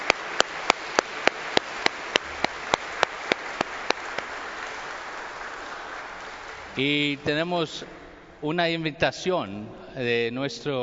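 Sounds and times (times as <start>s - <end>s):
steady rhythmic clapping: 0.0s - 8.0s
speech: 6.8s - 10.8s.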